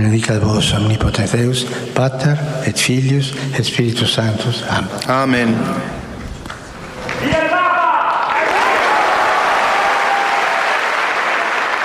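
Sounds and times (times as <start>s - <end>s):
speech: 0.0s - 6.0s
large crowd applauding in a hall: 8.0s - 11.8s.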